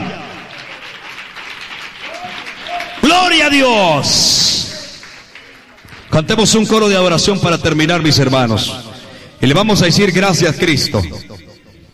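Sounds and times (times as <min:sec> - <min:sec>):
church congregation clapping during an evangelical service: 0:00.0 - 0:08.9
speech: 0:03.1 - 0:04.7, 0:06.2 - 0:08.8, 0:09.4 - 0:11.3.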